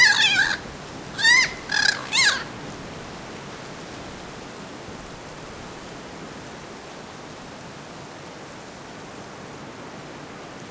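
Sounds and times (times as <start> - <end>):
bird harsh squawks: 0.0 - 2.5.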